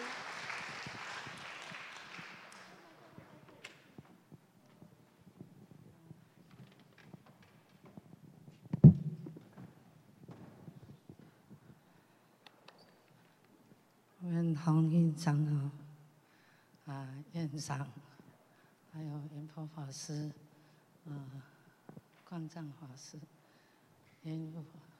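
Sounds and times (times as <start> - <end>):
crowd applause welcoming a speaker: 0.0 - 3.8
faint shuffles: 2.2 - 13.9
speech: 14.6 - 15.8, 17.6 - 18.1, 19.1 - 20.4, 21.0 - 21.5, 22.3 - 23.4, 24.2 - 24.8.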